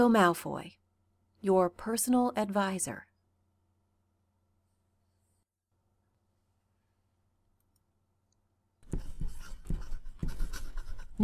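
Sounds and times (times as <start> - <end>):
speech: 0.0 - 0.8, 1.4 - 3.1
writing strokes scratching across a surface: 8.8 - 11.2.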